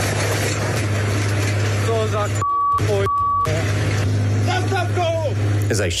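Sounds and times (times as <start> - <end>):
Ursus tractor driving with attached plough: 0.0 - 5.9.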